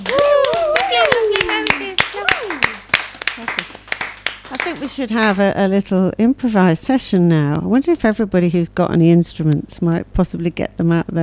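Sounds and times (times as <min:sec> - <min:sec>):
voices calling and cheering: 0:00.0 - 0:02.8
crowd clapping: 0:00.0 - 0:05.5
speech: 0:04.7 - 0:11.2.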